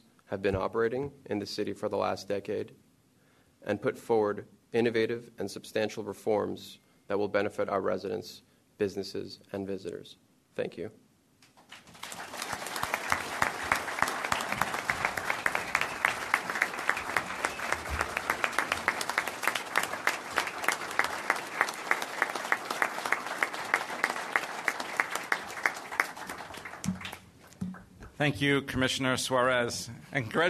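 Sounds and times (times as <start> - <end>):
speech: 0.3 - 2.8, 3.6 - 11.0, 28.2 - 30.4
audience applause: 11.6 - 27.9.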